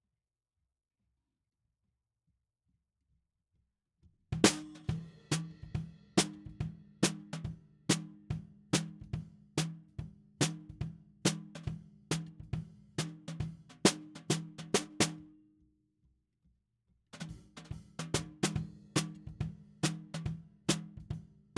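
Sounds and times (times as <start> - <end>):
snare drum: 4.4 - 9.8, 10.4 - 15.3, 17.2 - 21.5.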